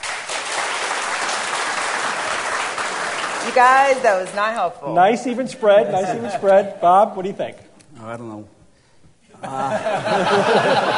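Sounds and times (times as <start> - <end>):
live audience applauding: 0.0 - 4.1
speech: 3.5 - 8.6, 9.4 - 10.9
laughter: 5.6 - 6.7, 9.3 - 10.9.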